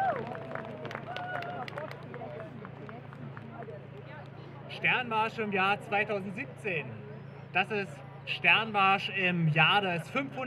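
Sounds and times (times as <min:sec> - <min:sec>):
crowd applauding a speaker at a Sternmarsch rally: 0:00.0 - 0:03.8
murmur of voices: 0:00.0 - 0:10.4
speech: 0:04.8 - 0:07.0, 0:07.6 - 0:10.4.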